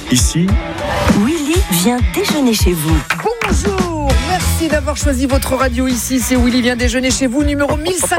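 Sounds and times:
speech: 0.1s - 8.1s
knocking on a door: 3.0s - 3.6s.

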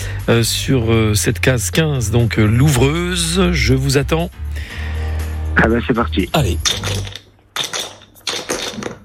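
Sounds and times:
speech: 0.3s - 4.8s, 5.6s - 7.1s
dice rattling and clattering during a board game: 6.6s - 9.0s.

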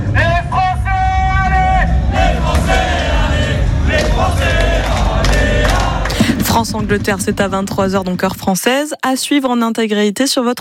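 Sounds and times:
supporters of the French team Les Bleus cheering and chanting: 0.0s - 7.7s
speech: 6.7s - 10.5s.

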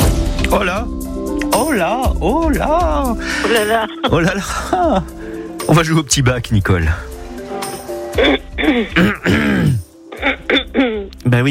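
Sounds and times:
speech: 0.5s - 7.1s, 8.2s - 11.4s
laughter: 3.2s - 5.2s
throat clearing: 8.2s - 11.2s.

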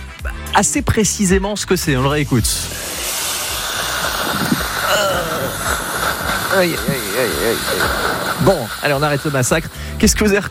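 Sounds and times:
speech: 0.3s - 3.0s, 6.5s - 10.4s
dentist's saliva ejector suction: 2.4s - 10.0s.

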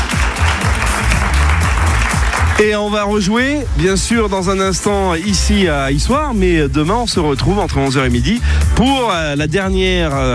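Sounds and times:
audience applause: 0.0s - 2.8s
speech: 2.6s - 10.3s.

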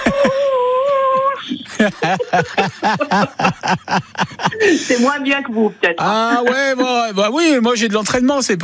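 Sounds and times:
person imitating a wolf howl: 0.0s - 1.4s
laughter or excited chatter: 1.7s - 4.9s, 6.0s - 7.4s
speech: 1.8s - 8.6s.

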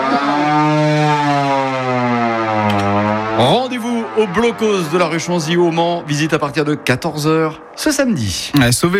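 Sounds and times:
hand-cranked air raid siren wailing: 0.0s - 6.0s
speech: 3.4s - 8.9s.

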